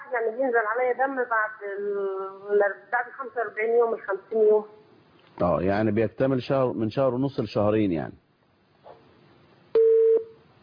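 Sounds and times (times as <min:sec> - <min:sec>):
speech: 0:00.1 - 0:04.8, 0:05.4 - 0:08.2
telephone busy tone after a phone call drops: 0:09.8 - 0:10.3.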